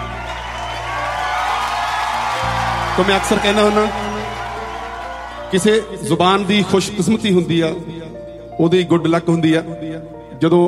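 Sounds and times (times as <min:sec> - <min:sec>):
crowd cheering and whooping: 0:00.0 - 0:06.9
audience applause at a gathering honouring the poet Surjit Patar: 0:00.0 - 0:07.0
speech: 0:03.0 - 0:04.1, 0:05.5 - 0:10.6.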